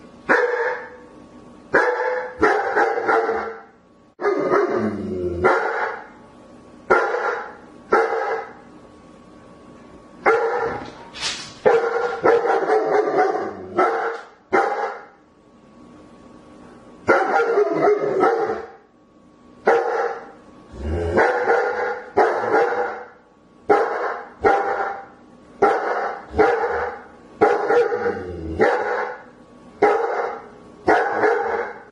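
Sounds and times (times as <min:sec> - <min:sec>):
German Shepherd dog barking: 0:00.3 - 0:01.0, 0:01.8 - 0:04.8, 0:05.4 - 0:06.1, 0:06.9 - 0:08.6, 0:10.2 - 0:11.0, 0:11.6 - 0:15.2, 0:17.1 - 0:18.8, 0:19.7 - 0:20.3, 0:21.2 - 0:31.8.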